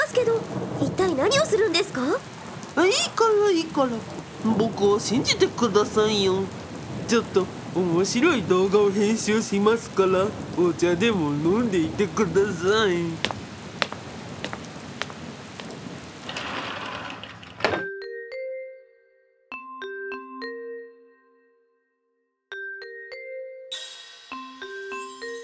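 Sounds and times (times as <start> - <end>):
thunder: 0.2 - 8.9, 10.1 - 17.7.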